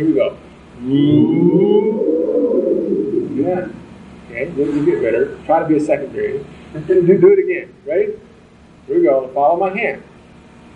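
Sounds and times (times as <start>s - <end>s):
speech: 0.0s - 8.3s, 8.9s - 10.1s
audience imitating a siren: 0.9s - 4.0s.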